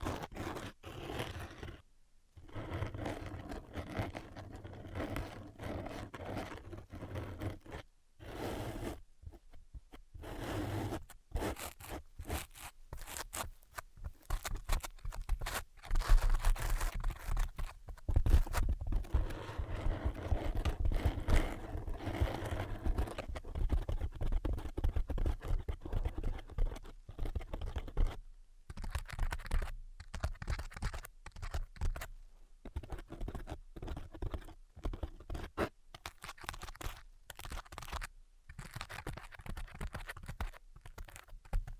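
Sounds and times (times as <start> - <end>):
zipper-like rasp: 0.0 - 1.8, 2.4 - 9.0, 10.2 - 23.3
tapping and scratching: 9.3 - 32.1, 32.7 - 41.7.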